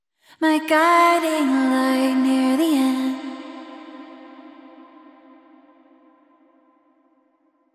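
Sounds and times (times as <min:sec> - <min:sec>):
person singing: 0:00.4 - 0:05.7.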